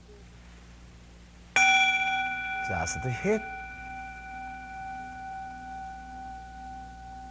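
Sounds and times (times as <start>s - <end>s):
meditation bell struck: 1.6s - 7.3s
speech: 2.7s - 3.6s.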